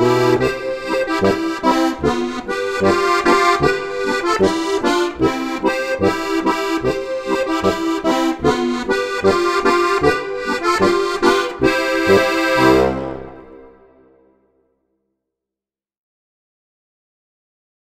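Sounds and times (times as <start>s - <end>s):
harmonica: 0.0s - 14.2s.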